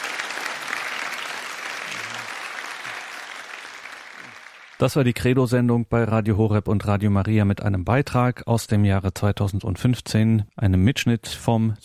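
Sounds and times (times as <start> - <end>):
audience applause: 0.0 - 4.8
speech: 4.8 - 11.8.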